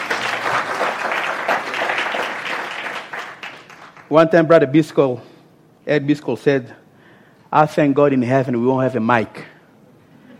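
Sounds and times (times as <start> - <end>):
audience clapping hands: 0.0 - 4.1
speech: 4.1 - 5.3, 5.9 - 6.8, 7.5 - 9.5.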